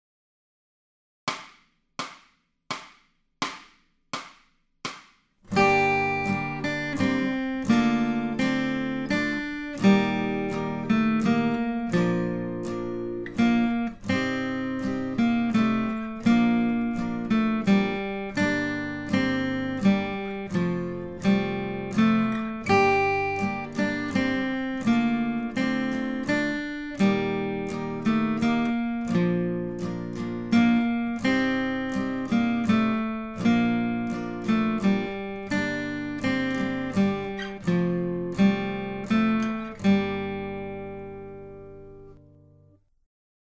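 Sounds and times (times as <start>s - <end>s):
acoustic guitar accompaniment: 5.4s - 42.8s.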